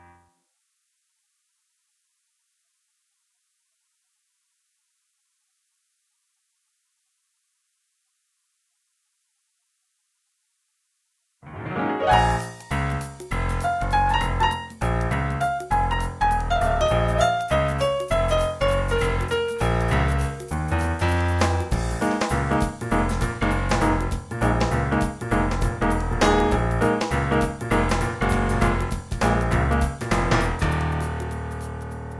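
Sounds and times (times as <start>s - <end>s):
piano version of a groove: 11.4s - 32.1s.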